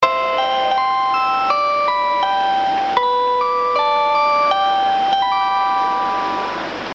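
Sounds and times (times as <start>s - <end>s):
train chime: 0.0s - 6.9s.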